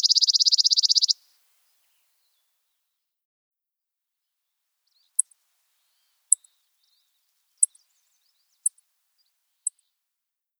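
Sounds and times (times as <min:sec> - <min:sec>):
chipping sparrow singing: 0:00.0 - 0:01.2, 0:04.9 - 0:09.8.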